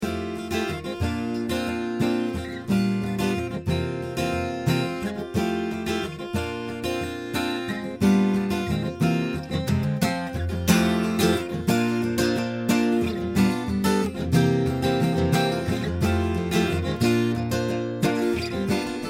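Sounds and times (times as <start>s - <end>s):
acoustic instrument recorded with a condenser microphone: 0.0s - 19.0s.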